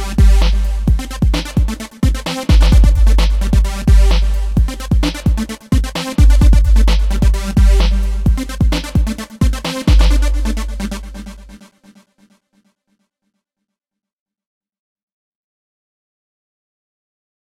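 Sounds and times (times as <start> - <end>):
outro music: 0.0 - 11.5.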